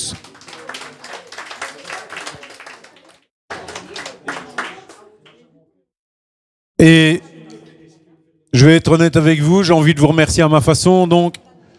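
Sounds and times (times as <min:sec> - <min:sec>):
audience clapping: 0:00.0 - 0:05.5
speech: 0:06.8 - 0:07.2, 0:08.6 - 0:11.4.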